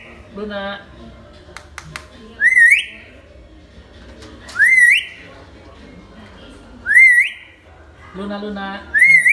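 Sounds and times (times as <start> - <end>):
speech: 0.4 - 1.2, 8.2 - 9.0
hill myna whistling: 2.4 - 3.0, 4.6 - 5.2, 6.9 - 7.5, 9.0 - 9.3.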